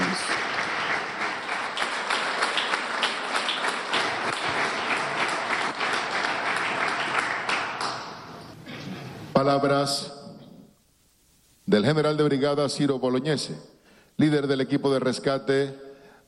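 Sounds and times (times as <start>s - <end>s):
applause: 0.0s - 8.5s
speech: 9.4s - 10.2s, 11.7s - 15.8s.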